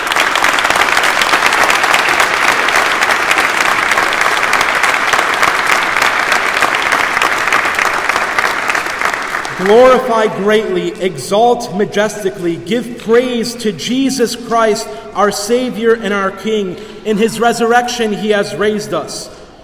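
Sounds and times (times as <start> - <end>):
audience clapping hands together: 0.0 - 10.3
speech: 9.6 - 19.4.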